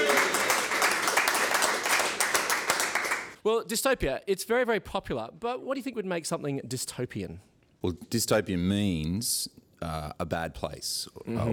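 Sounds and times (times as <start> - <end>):
applause: 0.0 - 3.4
speech: 3.4 - 11.5.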